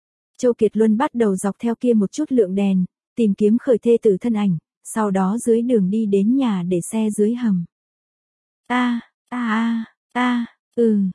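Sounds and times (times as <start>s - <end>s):
speech: 0.4s - 7.7s, 8.7s - 11.1s
woman moaning: 8.7s - 11.1s.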